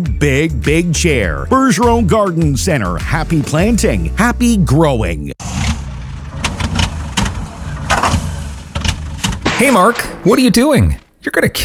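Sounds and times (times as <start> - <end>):
speech: 0.0 - 5.7, 9.6 - 11.6
lawnmower engine failing to start: 5.4 - 9.5.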